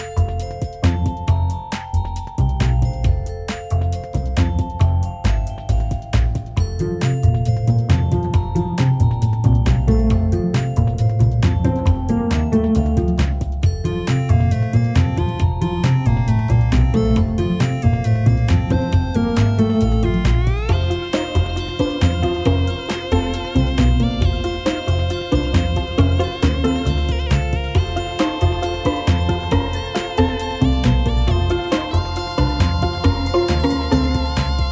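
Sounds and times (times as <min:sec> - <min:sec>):
mini game music loop: 0:00.0 - 0:34.6.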